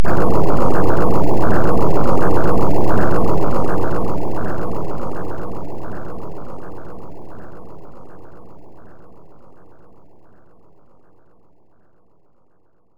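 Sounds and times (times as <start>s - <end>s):
looping earthquake rumble: 0.0s - 7.5s.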